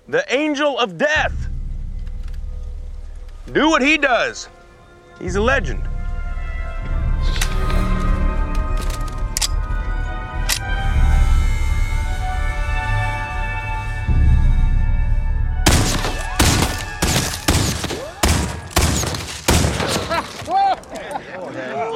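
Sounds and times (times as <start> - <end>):
speech: 0.1 - 1.5, 3.4 - 4.6, 5.2 - 5.9
quiet tonal opening: 1.2 - 17.5
rifle shots from a Confederate Civil War sharpshooter: 15.6 - 20.3
laughter: 20.0 - 21.9.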